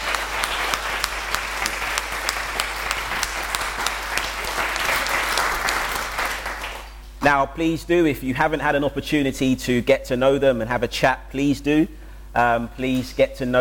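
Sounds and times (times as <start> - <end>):
church congregation clapping hands: 0.0 - 7.1
speech: 7.2 - 13.5.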